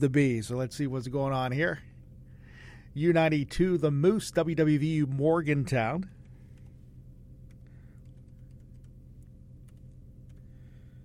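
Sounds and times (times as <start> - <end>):
speech: 0.0 - 1.9, 2.9 - 6.2
steady low hum: 0.0 - 11.0
password typed on a computer keyboard in a radio studio: 7.5 - 10.5.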